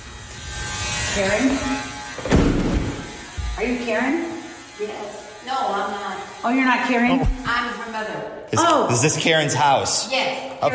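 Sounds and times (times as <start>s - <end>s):
door entry buzzer buzzing: 1.0s - 7.5s
speech: 1.2s - 2.5s, 3.6s - 10.7s.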